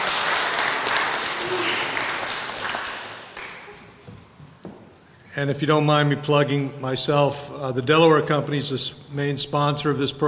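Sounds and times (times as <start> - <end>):
audience applause: 0.0 - 4.0
speech: 5.4 - 10.2.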